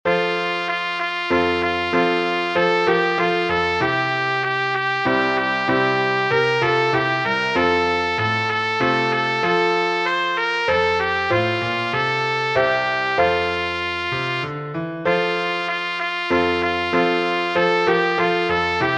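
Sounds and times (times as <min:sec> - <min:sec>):
fanfare minuet: 0:00.1 - 0:18.9.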